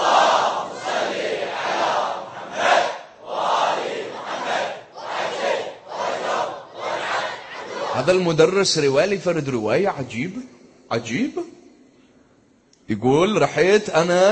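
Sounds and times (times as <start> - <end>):
large crowd chanting salawat blessings in unison: 0.0 - 8.3
speech: 8.0 - 11.4, 12.9 - 14.3.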